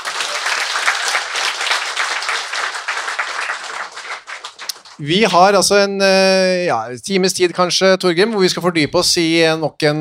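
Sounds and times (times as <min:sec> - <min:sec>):
audience applause: 0:00.0 - 0:05.6
speech: 0:05.0 - 0:09.9.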